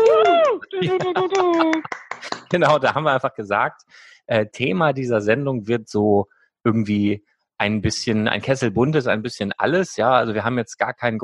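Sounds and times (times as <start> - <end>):
person singing a long note: 0.0 - 2.5
single person clapping: 0.0 - 2.9
laughter: 0.0 - 3.5
speech: 0.8 - 11.2.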